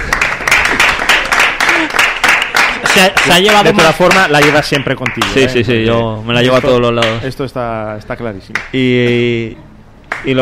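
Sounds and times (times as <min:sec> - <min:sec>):
audience applause: 0:00.0 - 0:05.5
speech: 0:03.0 - 0:10.4.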